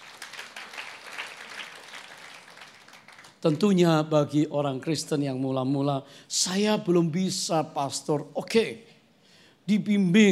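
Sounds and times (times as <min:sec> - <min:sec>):
audience applause: 0:00.0 - 0:03.4
speech: 0:03.4 - 0:08.9, 0:09.7 - 0:10.3.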